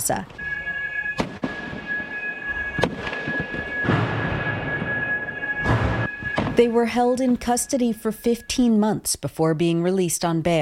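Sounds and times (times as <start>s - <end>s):
speech: 0.0s - 0.4s, 6.6s - 10.5s
constant high-pitched tone: 0.4s - 9.2s
quadcopter drones being smashed with heavy cracking blows: 1.2s - 6.6s.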